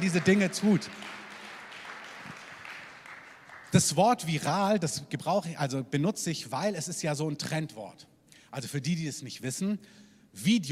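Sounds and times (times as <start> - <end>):
speech: 0.0 - 1.2, 3.8 - 10.6
audience clapping: 0.0 - 4.0.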